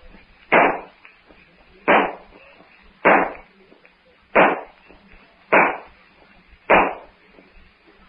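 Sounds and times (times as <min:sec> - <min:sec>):
gunshots in a Tarzan jungle adventure radio drama: 0:00.5 - 0:01.0, 0:01.9 - 0:02.4, 0:03.0 - 0:03.4, 0:04.4 - 0:04.8, 0:05.5 - 0:06.0, 0:06.7 - 0:07.1.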